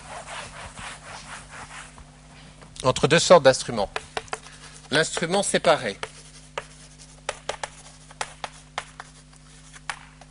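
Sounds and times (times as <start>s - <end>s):
chalk writing on a board during a lecture: 0.0s - 2.0s, 3.9s - 10.0s
speech: 2.8s - 4.1s, 4.9s - 6.0s.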